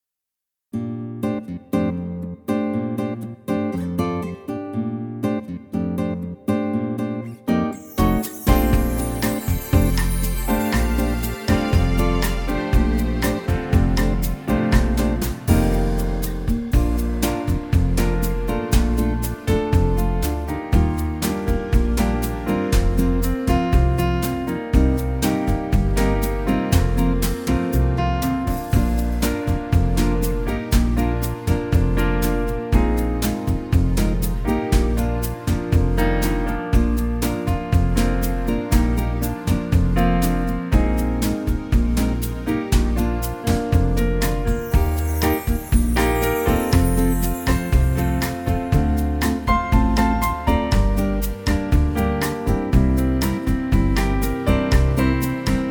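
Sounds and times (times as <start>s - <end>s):
fully instrumented bossa nova backing track: 1.2s - 55.6s.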